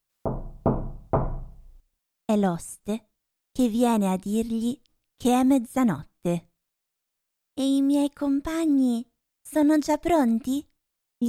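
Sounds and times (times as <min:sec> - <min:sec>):
violent heavy knocks on a bedroom door: 0:00.2 - 0:01.8
speech: 0:02.3 - 0:06.5, 0:07.6 - 0:11.2.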